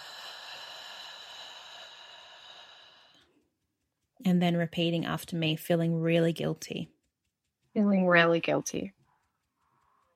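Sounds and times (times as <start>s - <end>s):
slow soft breath during a guided tapping meditation: 0.0s - 3.5s
speech: 4.2s - 7.0s, 7.8s - 9.0s.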